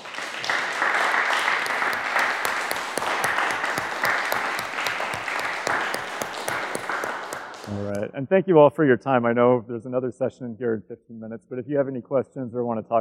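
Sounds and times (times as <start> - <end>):
audience applause: 0.0 - 8.0
speech: 8.2 - 12.9.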